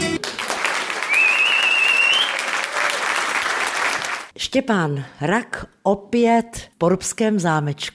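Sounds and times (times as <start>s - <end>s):
concert audience applause: 0.2s - 4.3s
speech: 4.5s - 7.9s.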